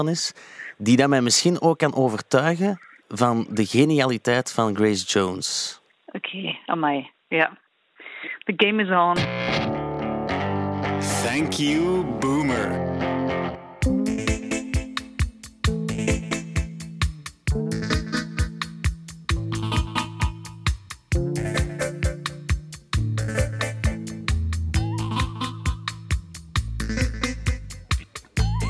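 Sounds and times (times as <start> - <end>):
speech: 0.0 - 7.6, 8.5 - 9.7, 11.2 - 12.9
pop song excerpt: 9.2 - 28.6.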